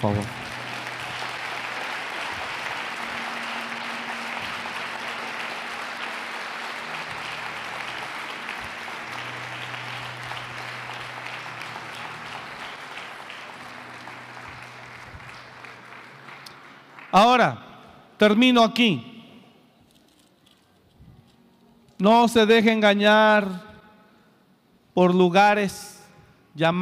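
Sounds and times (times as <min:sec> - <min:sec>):
speech: 0:00.0 - 0:00.4, 0:17.1 - 0:17.6, 0:18.2 - 0:19.1, 0:22.0 - 0:23.7, 0:25.0 - 0:26.0, 0:26.6 - 0:26.8
audience applause: 0:00.0 - 0:17.2.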